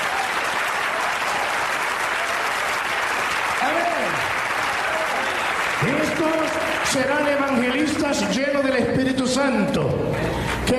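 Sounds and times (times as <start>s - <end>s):
audience applause: 0.0s - 8.4s
speech: 6.2s - 10.7s.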